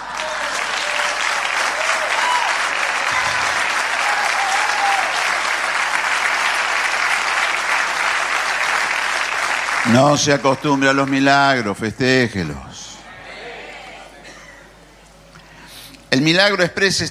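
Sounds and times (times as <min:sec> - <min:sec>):
audience applause: 0:00.0 - 0:11.8
speech: 0:09.9 - 0:12.7, 0:16.2 - 0:17.1.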